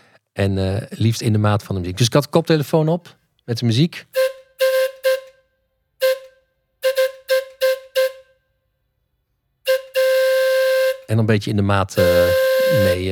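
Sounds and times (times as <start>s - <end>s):
speech: 0.4s - 4.2s, 11.1s - 13.1s
steam-style carousel whistle pulled by a rope: 4.1s - 8.4s, 9.6s - 11.1s, 12.0s - 13.1s.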